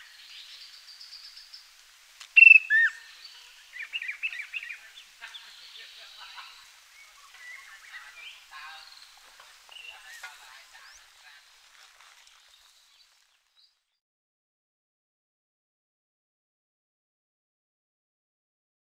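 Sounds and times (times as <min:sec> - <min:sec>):
chestnut-capped babbler calls: 0:02.4 - 0:09.0.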